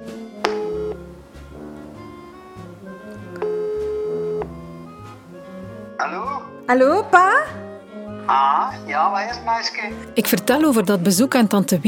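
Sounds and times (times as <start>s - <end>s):
soft continuous music: 0.0s - 11.8s
telephone ringback tone while calling: 0.5s - 1.1s, 3.4s - 4.9s
speech: 6.0s - 7.6s, 8.3s - 11.8s.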